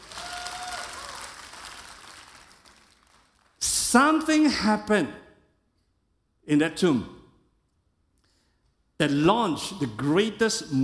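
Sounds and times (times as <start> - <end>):
church congregation clapping in praise during a worship service: 0.0 - 3.9
speech: 3.9 - 5.2, 6.5 - 7.2, 9.0 - 10.8.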